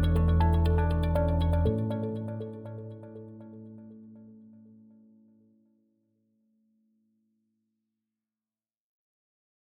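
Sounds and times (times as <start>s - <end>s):
positive corporate video music: 0.0s - 3.4s.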